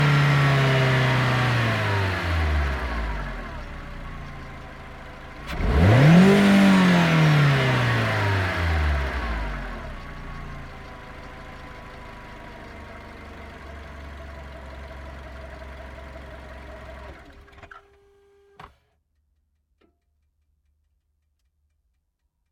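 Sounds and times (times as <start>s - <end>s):
Volkswagen Golf V 1.6 FSI engine starting, idling and revving: 0.0s - 17.7s.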